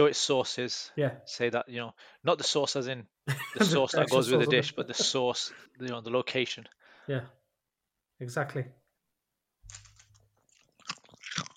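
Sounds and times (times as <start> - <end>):
speech: 0.0 - 7.4, 8.2 - 8.8
laughter: 3.3 - 5.6
crunching chicken tikka crisps: 9.7 - 11.5.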